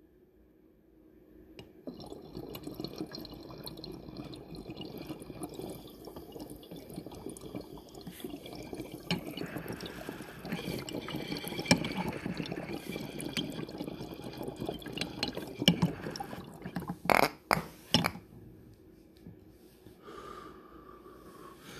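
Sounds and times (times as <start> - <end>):
bong bubbling while someone takes a long dab hit: 1.6 - 18.1.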